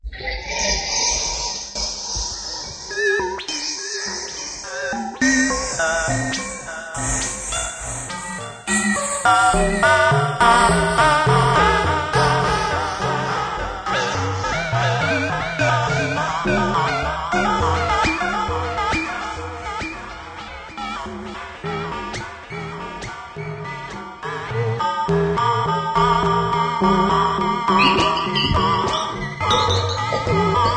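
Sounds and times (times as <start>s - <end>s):
electronica noise: 0.2s - 30.7s.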